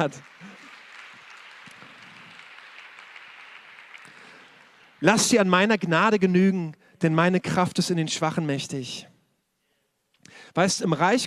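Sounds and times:
speech: 0:00.0 - 0:00.4, 0:05.0 - 0:09.1, 0:10.2 - 0:11.2
audience applause: 0:00.0 - 0:06.3.

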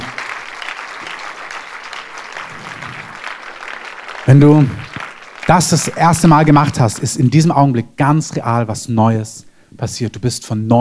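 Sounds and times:
audience applause: 0:00.0 - 0:07.2
speech: 0:04.2 - 0:04.8, 0:05.5 - 0:10.8.

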